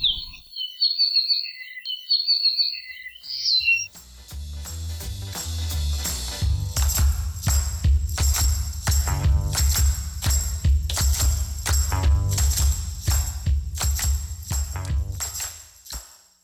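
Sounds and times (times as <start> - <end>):
native Hawaiian forest bird singing: 0.0 - 3.9
music with steady bass notes: 4.0 - 15.4.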